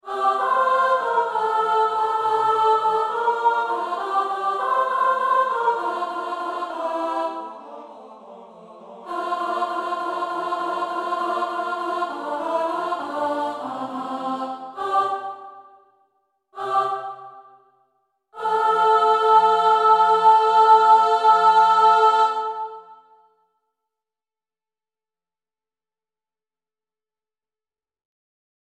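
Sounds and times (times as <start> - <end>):
alto part in tutti act one finale: 0.1 - 15.5, 18.4 - 23.0.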